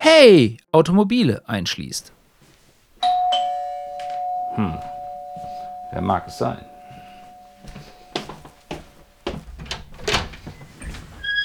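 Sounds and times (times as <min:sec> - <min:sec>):
speech: 0:00.2 - 0:02.2, 0:04.6 - 0:04.9, 0:05.9 - 0:06.7
squeaking door opening: 0:07.7 - 0:11.4
knocking clunks and rattles: 0:08.2 - 0:11.4.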